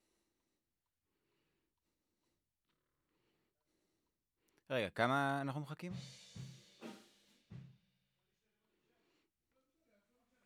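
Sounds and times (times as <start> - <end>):
vocals: 4.6 - 6.6.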